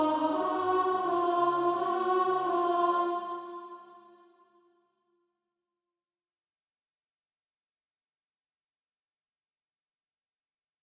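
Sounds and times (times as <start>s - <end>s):
alto voice singing practice music: 0.0s - 4.4s.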